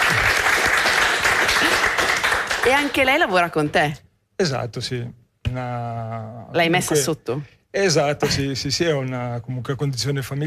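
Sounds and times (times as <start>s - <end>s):
audience applause for a guest: 0.0s - 3.3s
speech: 2.6s - 10.4s.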